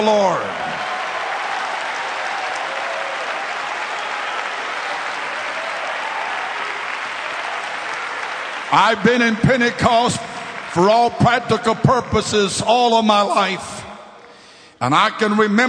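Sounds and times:
speech: 0.0s - 0.7s, 8.7s - 13.8s, 14.8s - 15.6s
audience clapping hands: 0.0s - 12.3s.

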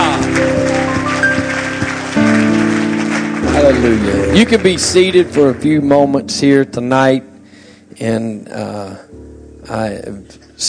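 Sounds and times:
audience clapping in a steady even beat: 0.0s - 6.6s
sustained organ-like music: 0.0s - 10.6s
speech: 3.9s - 7.3s, 8.0s - 9.0s, 9.7s - 10.6s.

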